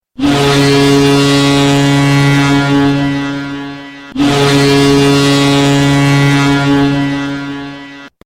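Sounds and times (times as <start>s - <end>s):
horn: 0.2s - 8.2s.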